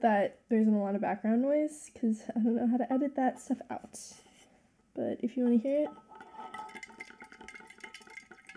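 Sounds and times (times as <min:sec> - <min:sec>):
speech: 0:00.0 - 0:04.3, 0:05.0 - 0:06.6
ice water sloshing and clinking in a glass as someone drinks: 0:05.9 - 0:08.5.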